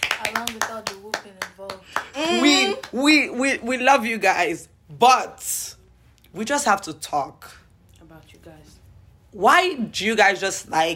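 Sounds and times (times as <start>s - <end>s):
family members clapping for their parents at home: 0.0s - 3.2s
speech: 0.3s - 7.6s, 9.3s - 10.9s.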